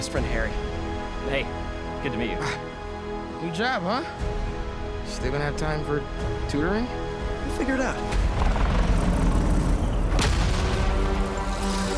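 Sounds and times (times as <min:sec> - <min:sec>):
speech: 0:00.0 - 0:08.6
drone exploding: 0:08.3 - 0:11.4.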